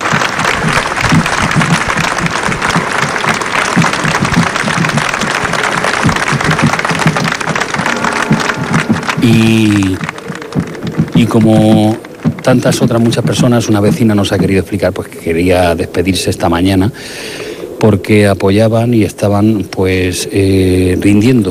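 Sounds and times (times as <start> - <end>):
loud applause from crowd in square: 0.0 - 13.7
swell of voices or music: 7.4 - 13.0
speech: 9.2 - 10.1, 11.2 - 21.4.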